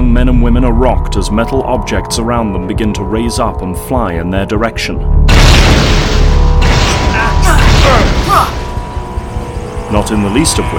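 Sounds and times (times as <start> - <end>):
speech: 0.2 - 8.6, 9.9 - 10.7
magnetic force field deflecting a blast: 5.2 - 9.9.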